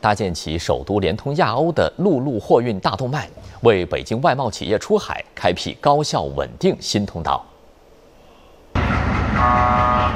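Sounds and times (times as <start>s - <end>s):
speech: 0.0s - 7.5s
departing international freight train whistle on an inland port railway: 9.2s - 10.1s.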